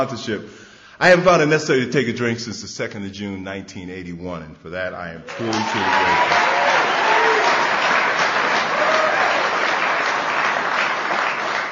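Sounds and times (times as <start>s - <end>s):
speech: 0.0s - 6.5s
audience applause: 5.3s - 11.6s.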